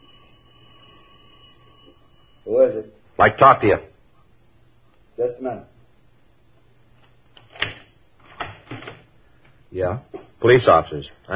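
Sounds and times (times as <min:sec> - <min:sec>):
apartment doorbell buzzing: 0:00.0 - 0:02.8
speech: 0:02.5 - 0:03.9, 0:05.2 - 0:05.7, 0:09.7 - 0:11.3.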